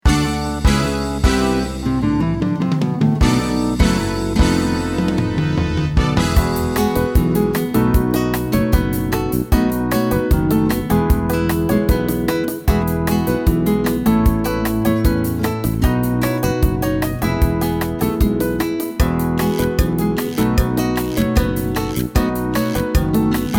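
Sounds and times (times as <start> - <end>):
salsa guitar: 0.0 - 23.5.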